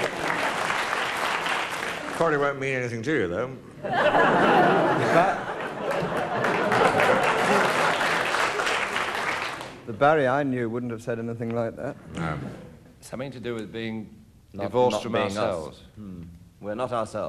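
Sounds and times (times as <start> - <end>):
audience applause: 0.0 - 2.6, 5.0 - 9.8
speech: 2.2 - 5.4, 10.0 - 17.2
laughter: 3.8 - 8.3.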